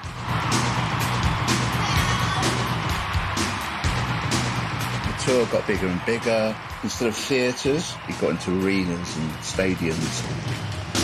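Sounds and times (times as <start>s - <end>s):
shouting: 0.0s - 8.2s
large excited concert crowd cheering: 0.0s - 11.0s
speech: 5.3s - 10.8s.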